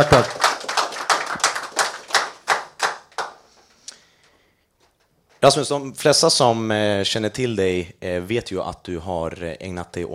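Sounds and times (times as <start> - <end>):
speech: 0.0 - 0.5, 5.4 - 10.1
audience applause: 0.0 - 3.5.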